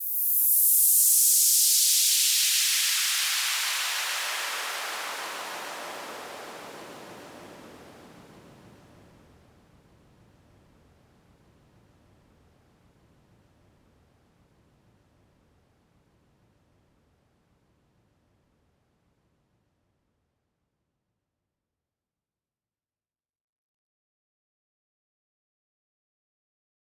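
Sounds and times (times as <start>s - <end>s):
noise downlifter: 0.0s - 8.4s.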